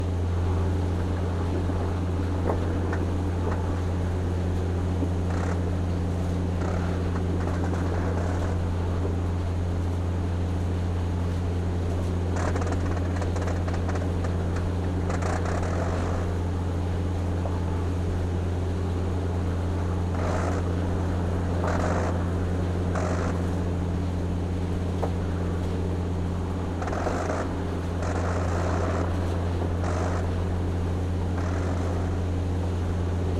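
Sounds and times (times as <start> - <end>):
airplane ambience: 0.0 - 33.3.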